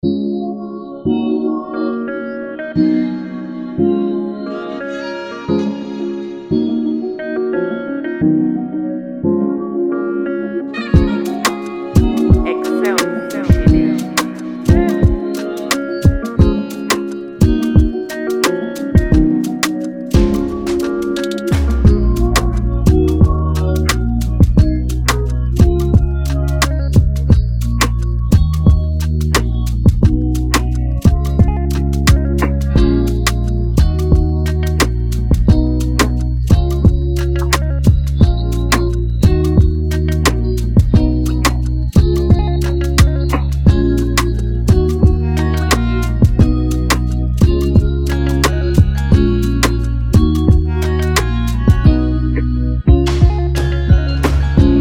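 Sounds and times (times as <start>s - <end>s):
afrobeat instrumental music: 0.0s - 54.7s.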